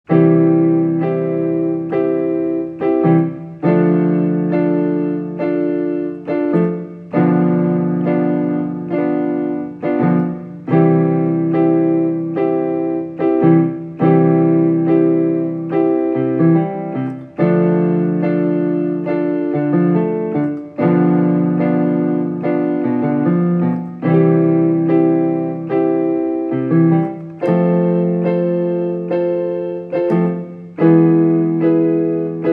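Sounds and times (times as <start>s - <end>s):
blues music: 0.0s - 32.5s.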